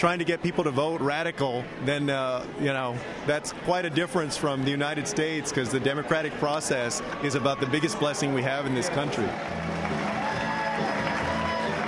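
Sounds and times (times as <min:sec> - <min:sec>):
speech: 0:00.0 - 0:10.0
crowd cheering and clapping as twin brothers arrive at a hall: 0:07.0 - 0:11.8.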